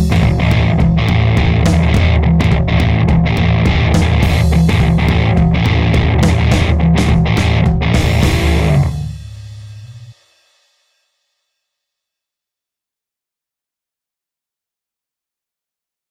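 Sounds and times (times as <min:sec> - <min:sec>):
bass: 0:00.0 - 0:10.1.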